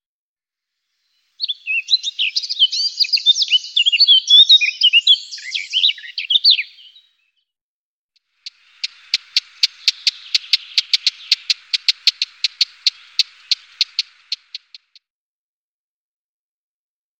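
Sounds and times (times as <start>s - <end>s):
Eurasian blackcap singing a hurried warble: 1.3s - 7.2s, 8.4s - 15.0s.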